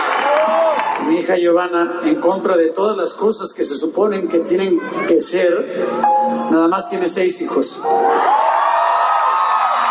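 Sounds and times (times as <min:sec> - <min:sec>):
crowd applause: 0:00.0 - 0:01.2, 0:08.0 - 0:09.9
speech: 0:01.1 - 0:08.5.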